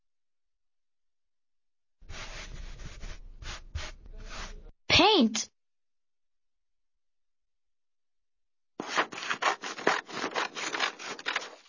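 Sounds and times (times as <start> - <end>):
speech: 5.1 - 5.5
scissors cutting paper: 8.8 - 11.6.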